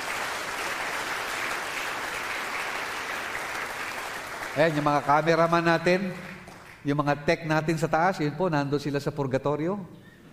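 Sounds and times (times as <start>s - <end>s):
church audience clapping: 0.0s - 7.0s
speech: 4.6s - 10.0s.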